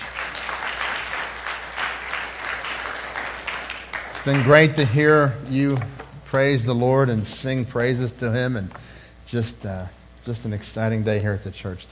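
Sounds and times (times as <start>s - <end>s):
audience applauding the band: 0.0s - 4.9s
speech: 4.2s - 11.9s.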